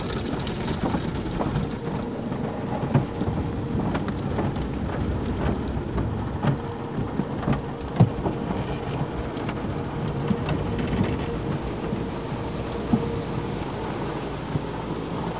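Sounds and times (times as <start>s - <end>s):
driving through a car wash: 0.0s - 15.3s.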